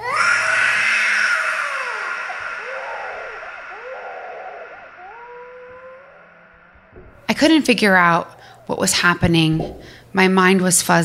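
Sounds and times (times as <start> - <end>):
person screaming: 0.0 - 7.0
speech: 7.4 - 11.0.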